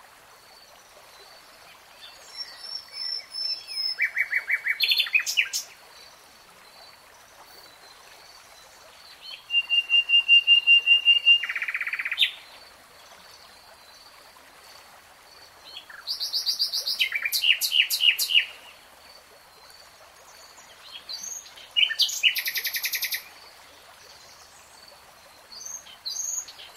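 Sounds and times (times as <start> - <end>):
nightingale song: 1.7 - 5.8, 7.4 - 12.6, 15.6 - 18.7, 20.3 - 23.3, 25.3 - 26.7.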